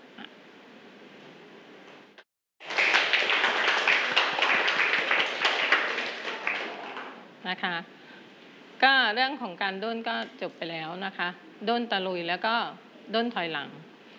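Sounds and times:
students clapping hands: 0:02.6 - 0:07.3
speech: 0:07.5 - 0:08.0, 0:08.8 - 0:13.8.

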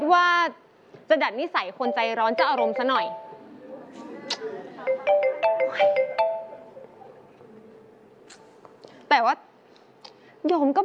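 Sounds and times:
speech: 0:00.1 - 0:03.2, 0:09.1 - 0:09.4, 0:10.4 - 0:10.8
phone ringtone: 0:01.8 - 0:03.5, 0:04.9 - 0:06.7.

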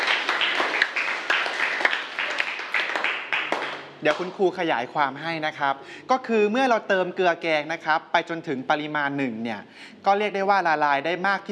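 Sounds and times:
students applauding: 0:00.0 - 0:04.3
speech: 0:04.0 - 0:11.4.

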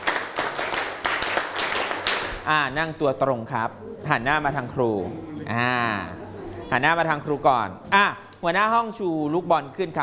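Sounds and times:
class of children clapping on a teacher's command: 0:00.0 - 0:02.4
speech: 0:02.4 - 0:10.0.

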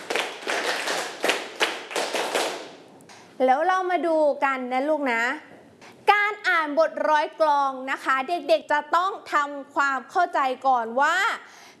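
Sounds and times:
children clapping hands: 0:00.0 - 0:02.8
speech: 0:03.4 - 0:05.5, 0:06.3 - 0:11.7.

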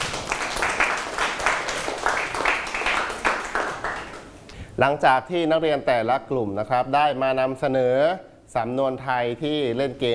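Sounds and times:
classroom applause: 0:00.0 - 0:04.4
speech: 0:04.8 - 0:10.1.

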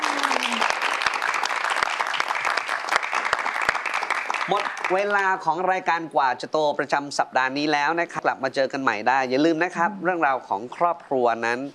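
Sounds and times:
audience applause: 0:00.0 - 0:05.4
speech: 0:04.5 - 0:11.7.

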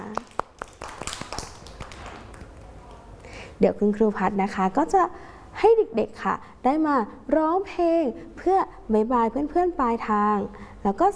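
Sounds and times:
children clapping for themselves: 0:00.0 - 0:03.0
speech: 0:03.6 - 0:11.1.

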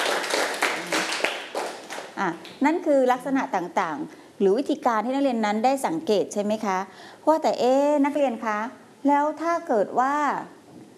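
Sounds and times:
classroom students clapping for classmates who answered: 0:00.0 - 0:02.2
speech: 0:02.2 - 0:10.6.

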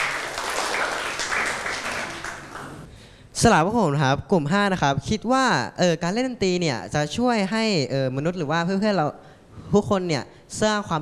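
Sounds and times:
classroom applause: 0:00.0 - 0:02.9
speech: 0:03.4 - 0:11.0.

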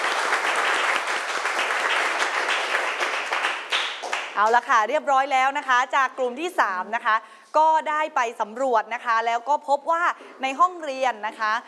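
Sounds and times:
loud applause for a presenting group: 0:00.0 - 0:04.4
speech: 0:04.4 - 0:11.6.

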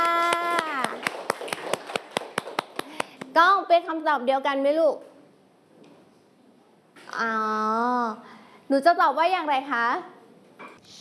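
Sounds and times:
children clapping for a classmate: 0:00.0 - 0:03.3
speech: 0:03.4 - 0:05.1, 0:07.2 - 0:10.1.

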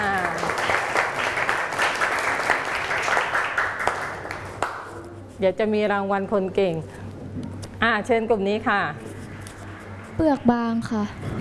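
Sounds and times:
children applauding a classmate: 0:00.0 - 0:04.8
speech: 0:05.4 - 0:09.1, 0:10.2 - 0:11.3.

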